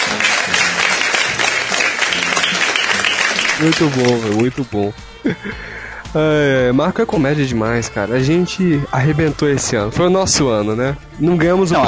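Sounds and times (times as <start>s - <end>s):
studio audience applauding after a comedy bit on a Brazilian talk show: 0.0s - 4.6s
speech: 3.6s - 11.8s.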